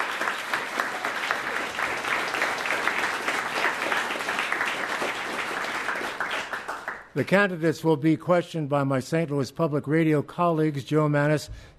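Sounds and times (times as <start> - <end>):
audience applause: 0.0 - 7.1
speech: 7.2 - 11.7.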